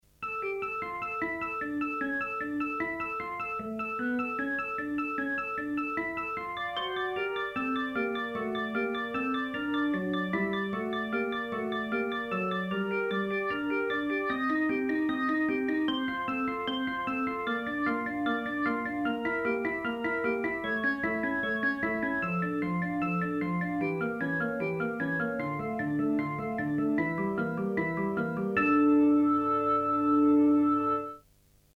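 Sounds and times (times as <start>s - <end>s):
clean Hammond C3 organ: 0.1s - 31.2s.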